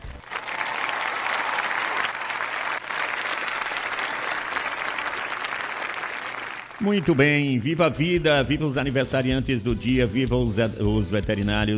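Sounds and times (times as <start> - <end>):
applause: 0.0 - 7.4
speech: 6.8 - 11.7.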